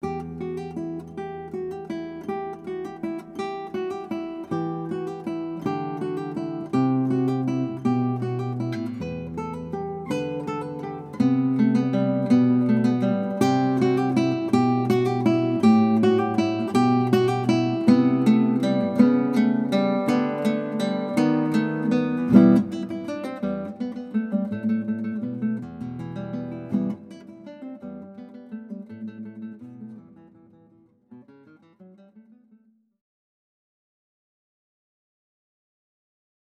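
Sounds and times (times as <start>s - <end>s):
guitar playing in a recital: 0.0s - 32.5s.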